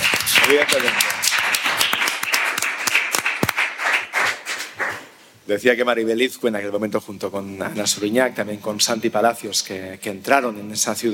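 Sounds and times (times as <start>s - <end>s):
audience applause: 0.0s - 5.1s
speech: 0.5s - 1.2s, 5.5s - 11.1s.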